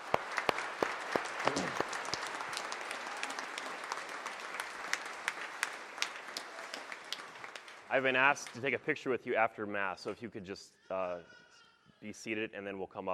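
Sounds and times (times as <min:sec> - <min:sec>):
applause at a Mass: 0:00.0 - 0:08.9
speech: 0:08.0 - 0:11.4, 0:12.0 - 0:13.1.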